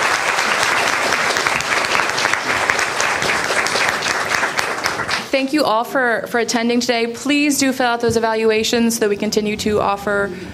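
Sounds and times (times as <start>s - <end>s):
audience applause: 0.0s - 5.3s
speech: 5.4s - 10.5s.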